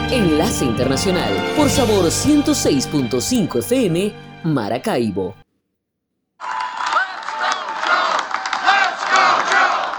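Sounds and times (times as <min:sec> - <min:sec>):
speech: 0:00.1 - 0:05.4
crowd chanting at union conference: 0:06.6 - 0:09.9.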